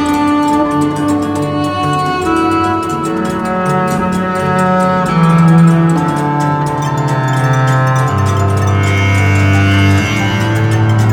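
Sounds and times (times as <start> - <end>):
harps: 0.0 - 11.1.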